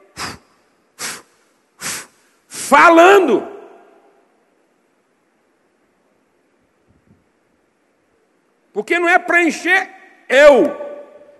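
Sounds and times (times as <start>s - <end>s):
preacher inhaling deeply: 0.1s - 2.7s
speech: 2.7s - 3.5s, 8.8s - 10.9s.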